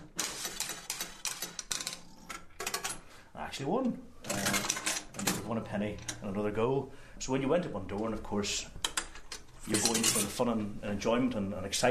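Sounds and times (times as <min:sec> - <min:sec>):
1950s coin-operated penny arcade game machine being played, ratcheting clicks: 0:00.0 - 0:03.0, 0:04.3 - 0:06.2
speech: 0:03.6 - 0:04.5, 0:05.2 - 0:08.8, 0:09.7 - 0:11.8.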